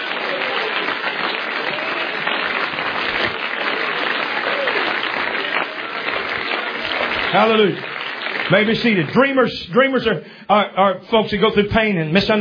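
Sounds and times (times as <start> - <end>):
audience clapping hands: 0.0 - 9.5
speech: 7.3 - 7.9, 8.5 - 12.4.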